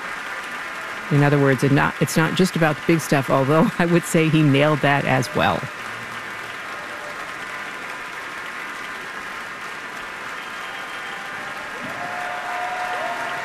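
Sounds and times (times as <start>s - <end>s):
concert hall standing ovation applause: 0.0s - 13.4s
speech: 1.1s - 6.0s
whistle or cheer: 6.5s - 7.7s, 10.3s - 13.4s.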